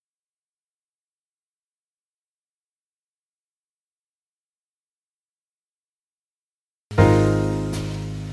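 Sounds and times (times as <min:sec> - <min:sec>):
jazz piano play-along in A flat: 0:06.9 - 0:08.3.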